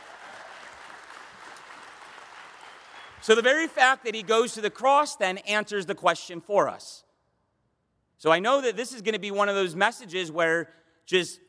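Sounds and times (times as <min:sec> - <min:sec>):
audience applause: 0:00.0 - 0:04.5
speech: 0:03.2 - 0:07.1, 0:08.2 - 0:11.4.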